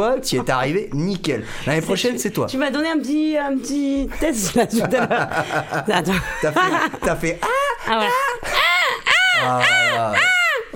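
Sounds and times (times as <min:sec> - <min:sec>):
speech: 0:00.0 - 0:08.6, 0:09.4 - 0:10.4
laughter: 0:04.3 - 0:10.7
person imitating a seagull cry from Lac du Salagou: 0:09.1 - 0:10.7.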